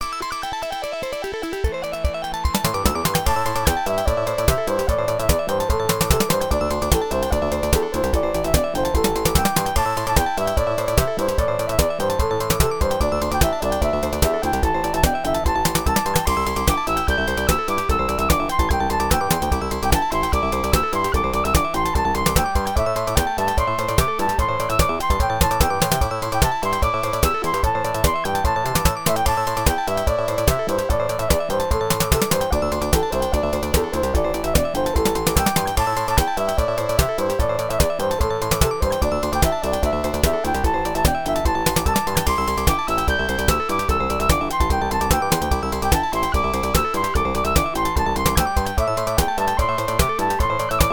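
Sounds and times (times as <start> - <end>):
fast background music: 0.0 - 50.9.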